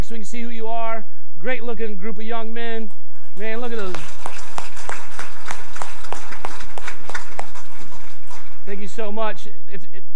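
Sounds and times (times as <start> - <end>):
speech: 0.1 - 4.2, 8.7 - 10.1
welcoming applause: 3.3 - 8.8.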